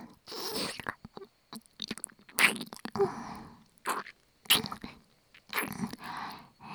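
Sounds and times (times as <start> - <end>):
reversed ear licking: 0.5 - 3.1, 3.6 - 6.1.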